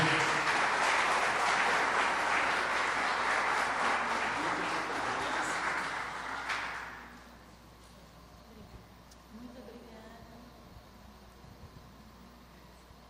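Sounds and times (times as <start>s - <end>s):
audience applause: 0.0s - 7.2s.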